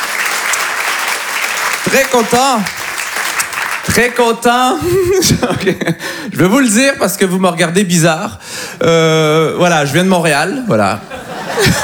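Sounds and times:
audience applause: 0.0s - 4.4s
speech: 1.9s - 2.8s, 4.0s - 11.8s
laughter: 4.6s - 6.0s, 10.8s - 11.8s.

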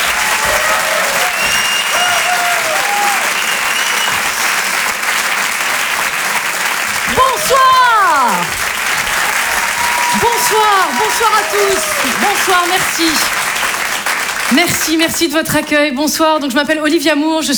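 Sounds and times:
whooping cheers: 0.0s - 4.9s, 5.7s - 13.3s
audience clapping for a performer at a comedy show: 0.0s - 15.9s
speech: 10.6s - 13.4s, 14.6s - 17.5s.

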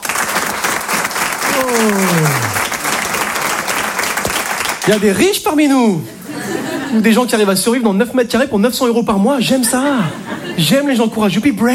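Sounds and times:
audience applause: 0.0s - 5.2s
speech: 1.7s - 2.2s, 4.9s - 6.2s, 6.9s - 11.7s
laughter: 6.0s - 7.8s, 9.4s - 11.1s.

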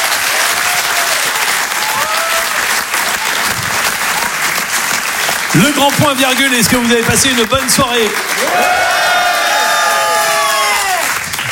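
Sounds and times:
applause: 0.0s - 11.4s
audience cheering at the Grand Point Virgule comedy show: 0.0s - 11.4s
high whoops: 0.3s - 2.6s, 8.4s - 11.2s
speech: 5.6s - 9.2s.

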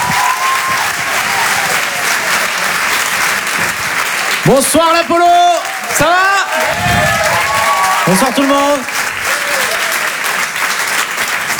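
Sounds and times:
faint cheer or whistle: 0.0s - 2.8s, 4.4s - 10.3s
audience applause: 0.0s - 11.5s
speech: 4.5s - 5.4s, 6.0s - 6.3s, 8.1s - 9.0s.

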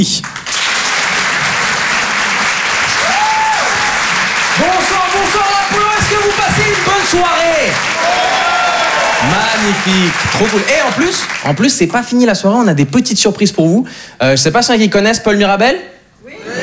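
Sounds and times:
speech: 0.0s - 0.4s, 4.6s - 16.0s
audience clapping at a comedy club: 0.0s - 13.0s.

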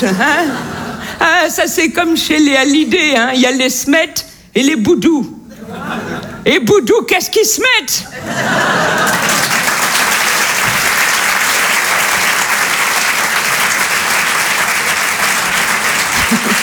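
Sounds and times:
laughter: 0.0s - 1.2s, 5.5s - 6.4s, 8.0s - 10.0s, 14.5s - 16.6s
speech: 0.0s - 5.4s, 6.4s - 8.9s
loud audience applause: 8.4s - 16.6s.

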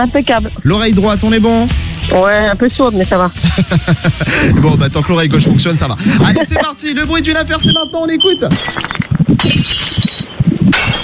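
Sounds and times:
speech: 0.0s - 10.0s
laughter: 3.3s - 7.7s
glass breaking: 8.4s - 11.0s.

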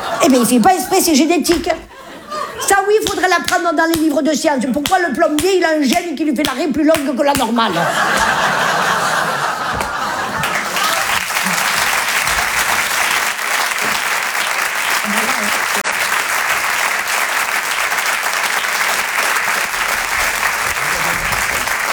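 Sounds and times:
laughter: 0.0s - 3.0s, 7.6s - 15.9s, 18.8s - 21.9s
speech: 0.2s - 1.9s, 2.6s - 8.6s
audience applause: 7.7s - 21.9s.

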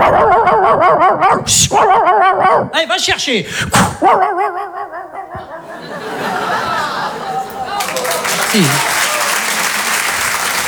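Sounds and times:
person imitating a dog barking with their voice: 0.0s - 3.0s, 3.7s - 5.8s
speech: 0.9s - 4.5s, 8.5s - 8.9s
laughter: 4.4s - 10.6s.

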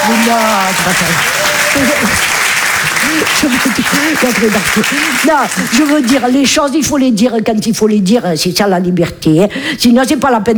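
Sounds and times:
audience applauding loudly: 0.0s - 6.5s
speech: 0.2s - 10.5s.

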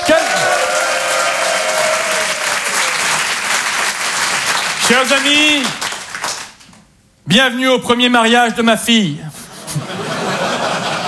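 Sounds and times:
wedding guests applauding: 0.0s - 6.8s
speech: 4.9s - 5.8s, 7.3s - 9.8s
laughter: 9.4s - 11.0s.

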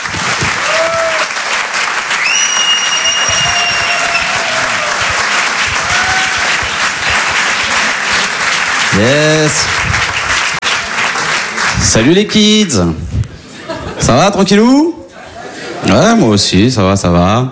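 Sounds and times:
audience applause welcoming a comedian at a comedy show: 0.0s - 12.4s
speech: 9.0s - 10.0s, 11.8s - 13.2s, 14.0s - 14.9s, 15.9s - 17.4s
laughter: 13.4s - 14.4s, 15.0s - 16.3s.

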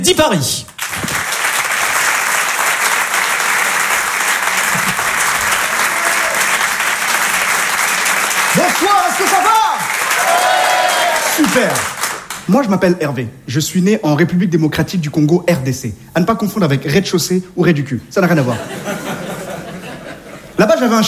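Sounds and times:
speech: 0.0s - 0.7s, 8.5s - 9.8s, 11.4s - 11.9s, 12.5s - 19.1s, 20.6s - 21.0s
audience applause: 0.8s - 12.4s
cheers and whoops: 5.5s - 6.6s, 8.8s - 11.4s
laughter: 18.5s - 20.6s.

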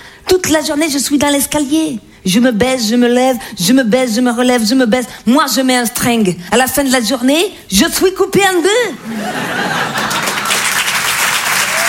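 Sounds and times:
speech: 0.3s - 10.1s
laughter: 9.0s - 11.0s
audience applause: 9.6s - 11.8s.

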